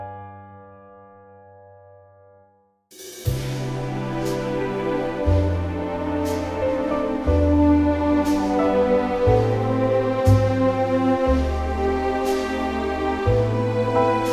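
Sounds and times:
orchestral music in C: 0:02.9 - 0:14.3.

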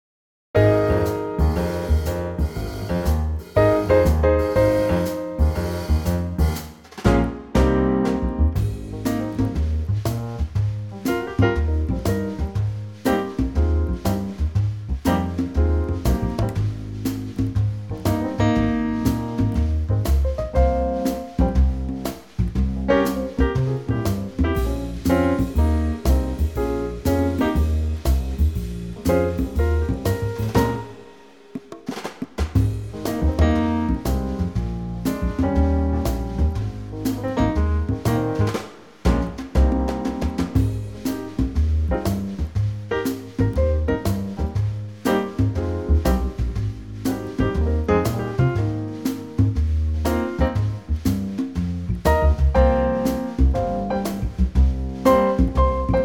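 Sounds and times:
congas backing track in A flat: 0:00.6 - 0:56.0.

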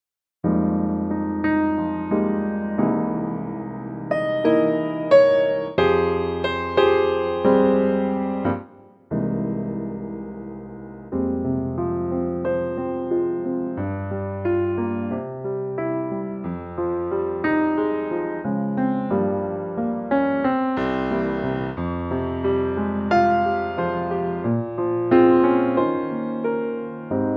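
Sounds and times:
FM synth piano: 0:00.4 - 0:27.3.

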